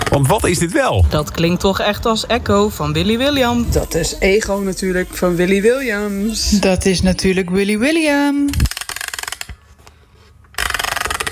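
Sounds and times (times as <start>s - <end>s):
speech: 0.1s - 8.7s
music box being wound up: 8.5s - 9.6s, 10.5s - 11.3s.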